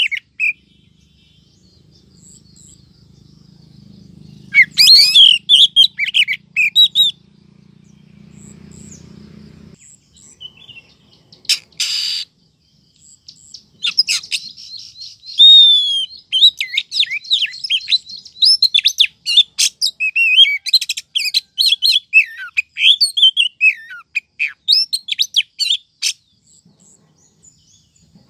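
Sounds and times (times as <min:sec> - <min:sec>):
Oriental magpie-robin rising whistle: 0:00.0 - 0:00.6, 0:03.8 - 0:07.2, 0:10.4 - 0:12.3, 0:13.5 - 0:26.2.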